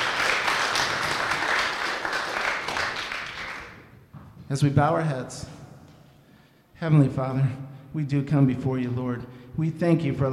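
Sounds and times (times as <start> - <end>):
audience applause: 0.0 - 3.8
speech: 4.5 - 5.6, 6.8 - 10.3.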